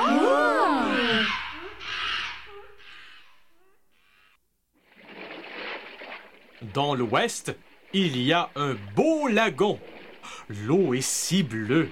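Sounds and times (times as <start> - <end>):
monkeys calling in the jungle: 0.3 - 4.4
speech: 6.7 - 11.9.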